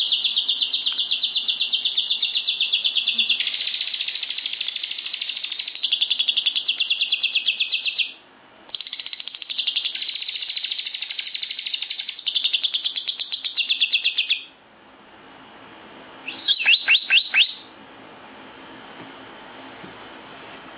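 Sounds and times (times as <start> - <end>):
lovebird giving shrill sharp chirps: 0.0 - 8.2, 8.8 - 14.6, 16.2 - 17.7.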